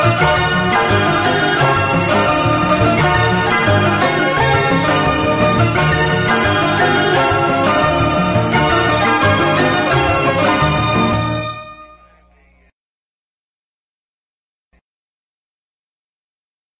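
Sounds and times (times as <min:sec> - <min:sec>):
instrumental music: 0:00.0 - 0:12.2.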